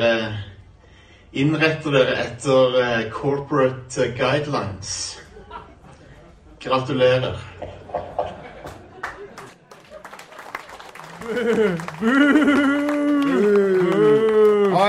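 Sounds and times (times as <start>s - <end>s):
speech: 0.0s - 0.5s, 1.3s - 5.2s, 6.6s - 8.2s, 11.2s - 14.2s
laughter: 5.2s - 6.6s, 7.6s - 14.8s
people clapping: 8.6s - 14.8s.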